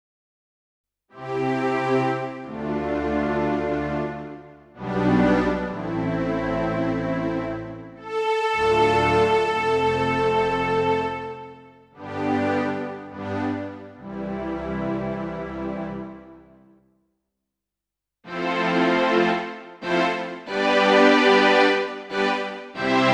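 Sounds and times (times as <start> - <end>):
strings: 1.2 - 16.5, 18.3 - 23.1
choir singing: 20.4 - 23.1.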